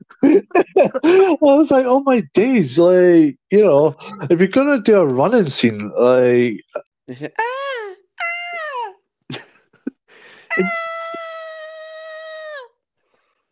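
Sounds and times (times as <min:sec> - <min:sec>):
laughter: 0:00.0 - 0:01.8, 0:04.0 - 0:04.6
speech: 0:00.3 - 0:07.6, 0:10.6 - 0:10.8
woman screaming: 0:07.4 - 0:09.0, 0:10.5 - 0:12.8.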